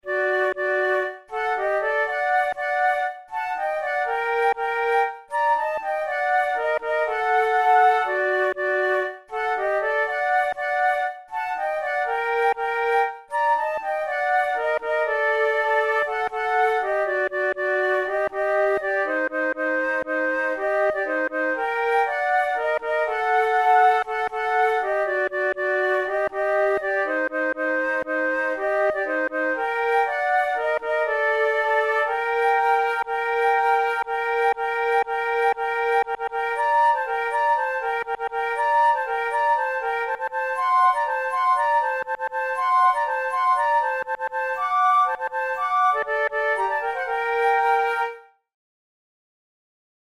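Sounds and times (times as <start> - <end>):
flute duet: 0.0 - 48.5.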